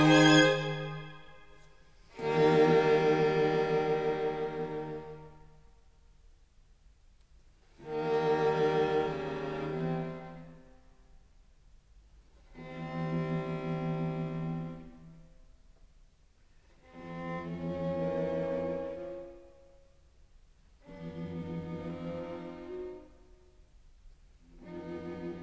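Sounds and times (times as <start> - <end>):
string quartet of two violins, viola and cello playing a fugue: 0.0 - 5.3, 7.7 - 10.6, 12.5 - 15.1, 16.8 - 19.4, 20.8 - 23.4, 24.5 - 25.4.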